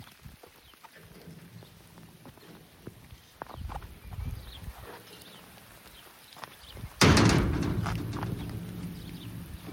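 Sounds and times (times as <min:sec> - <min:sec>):
exit gate noise: 0:07.0 - 0:09.7.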